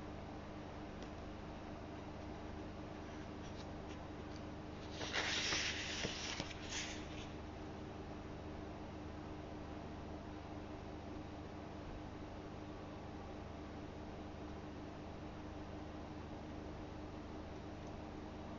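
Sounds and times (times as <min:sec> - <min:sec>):
steady low hum: 0:00.0 - 0:18.5
bright scratchy rustle: 0:04.8 - 0:07.4.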